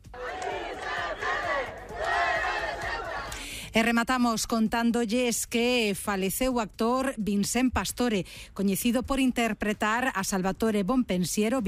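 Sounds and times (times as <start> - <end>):
protest crowd shouting: 0.1 - 3.4
speech: 3.7 - 11.6.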